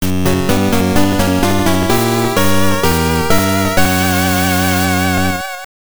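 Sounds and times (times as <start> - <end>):
jingle: 0.0 - 5.7.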